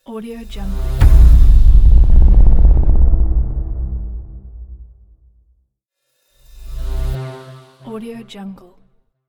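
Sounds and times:
cinematic logo intro music: 0:00.5 - 0:05.0.

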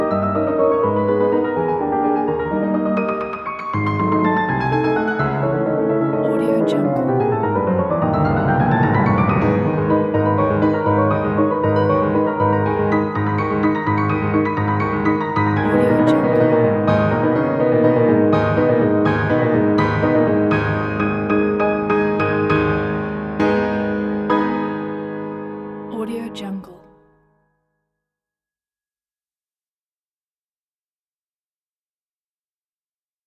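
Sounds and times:
classical piano piece: 0:00.0 - 0:25.9.

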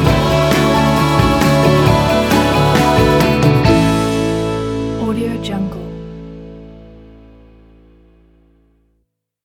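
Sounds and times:
uplifting motivational acoustic music: 0:00.0 - 0:07.5.

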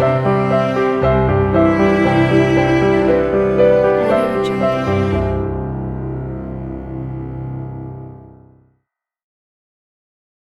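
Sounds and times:
emotional cello: 0:00.0 - 0:08.6
emotional piano: 0:00.0 - 0:08.7.

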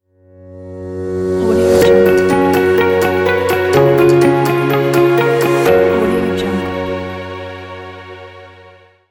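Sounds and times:
corporate logo jingle: 0:01.1 - 0:07.7.

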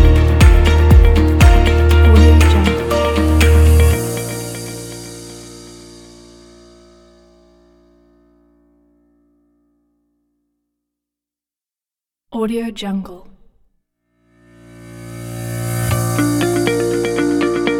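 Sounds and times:
inspiring corporate music: 0:00.0 - 0:06.3, 0:15.9 - 0:17.7.

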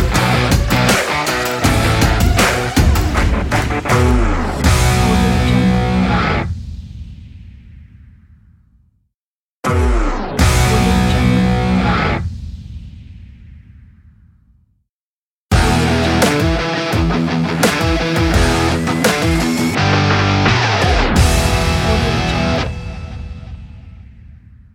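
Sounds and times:
upbeat fun sports rock music: 0:00.0 - 0:06.5, 0:10.4 - 0:12.2, 0:15.5 - 0:23.5.

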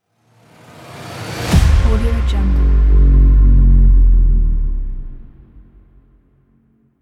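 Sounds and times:
dark cinematic logo button sound: 0:00.4 - 0:06.7.

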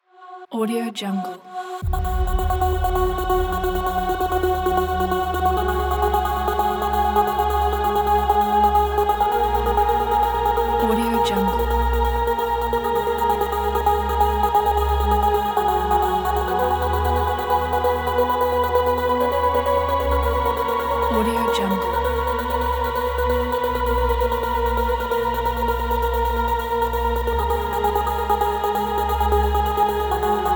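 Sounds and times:
epic trance music: 0:01.6 - 0:30.5.

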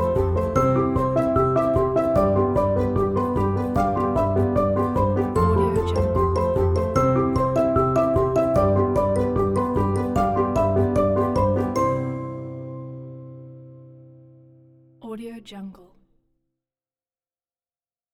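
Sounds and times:
quirky business advert music: 0:00.0 - 0:13.5.

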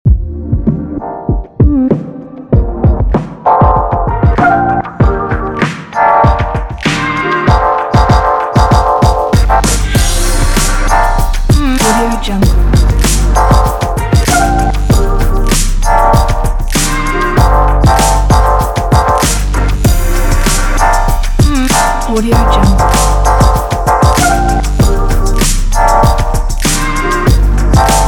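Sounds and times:
old school hip hop music: 0:00.1 - 0:28.0.

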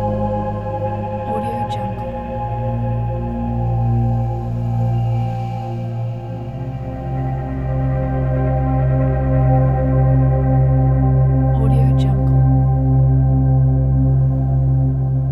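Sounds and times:
atmospheric ambient soundscape: 0:00.0 - 0:15.3.

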